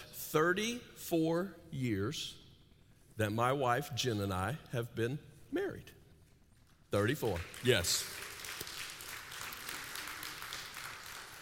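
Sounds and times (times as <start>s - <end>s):
speech: 0.3s - 2.4s, 3.2s - 6.0s, 6.9s - 8.2s
applause sound effect: 7.0s - 11.4s.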